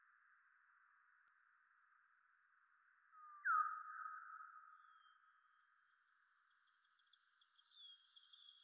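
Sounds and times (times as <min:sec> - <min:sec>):
bat echolocation calls: 0:01.4 - 0:05.3.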